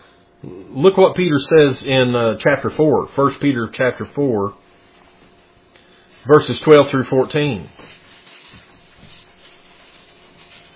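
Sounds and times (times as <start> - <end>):
speech: 0.4 - 4.6, 6.2 - 8.0
Bible pages rustling: 7.7 - 10.7.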